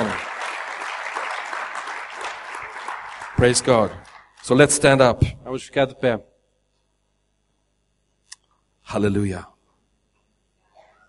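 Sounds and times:
congregation applauding during a bilingual church service: 0.0s - 5.1s
speech: 3.4s - 6.3s, 8.9s - 9.5s.

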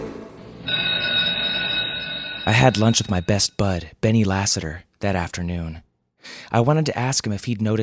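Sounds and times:
school bell ringing for end of class: 0.7s - 3.5s
speech: 2.5s - 7.8s.

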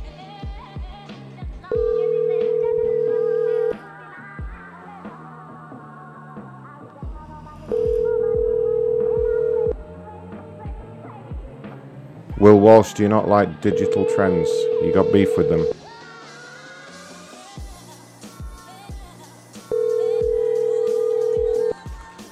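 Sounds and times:
music: 0.0s - 22.3s
telephone ringing tones: 1.7s - 3.8s, 7.7s - 9.7s, 13.3s - 15.8s, 19.7s - 21.8s
speech: 12.6s - 15.8s.

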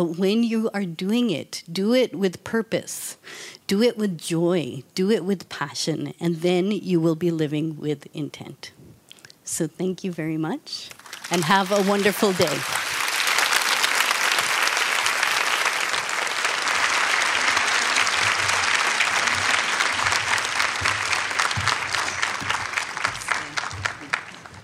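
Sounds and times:
speech: 0.0s - 8.8s, 9.5s - 12.8s
audience applause: 10.9s - 24.6s.

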